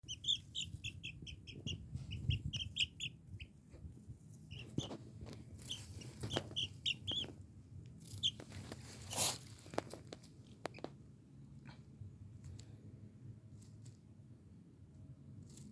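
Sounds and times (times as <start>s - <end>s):
Silkie chicken chick peeping: 0.0s - 7.4s, 8.0s - 8.8s
pecking and rustling: 0.0s - 11.0s.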